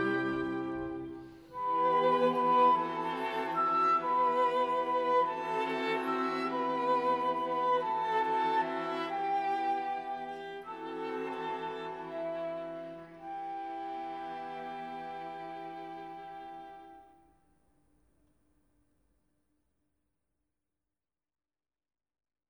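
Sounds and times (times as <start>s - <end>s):
instrumental music: 0.0s - 17.1s.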